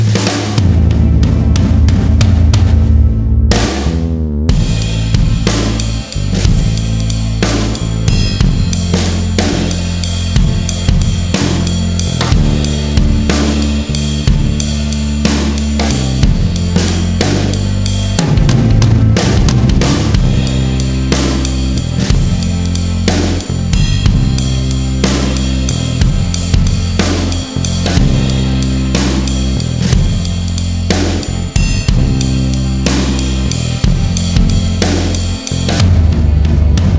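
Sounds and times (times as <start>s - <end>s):
backing bass drums: 0.0s - 36.9s.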